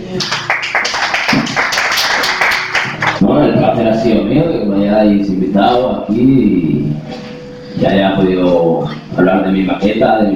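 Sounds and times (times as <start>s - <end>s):
speech: 0.1s - 0.5s, 4.0s - 10.3s
applause: 0.1s - 3.2s.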